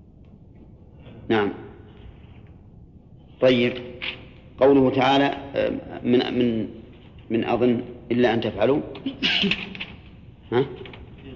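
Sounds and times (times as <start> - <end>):
faint room murmur: 0.0 - 11.3
speech: 1.3 - 1.7, 3.4 - 4.0, 4.6 - 9.8, 10.5 - 10.9
sneeze: 9.1 - 9.8.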